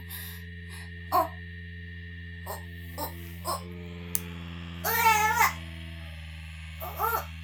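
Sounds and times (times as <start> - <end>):
person vocalizing: 1.1 - 1.3, 2.5 - 3.7, 4.9 - 5.6, 6.8 - 7.3.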